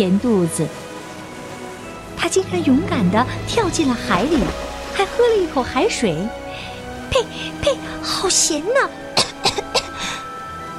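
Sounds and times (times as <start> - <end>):
speech: 0.0 - 0.9, 2.2 - 9.8
coughing: 9.2 - 10.2.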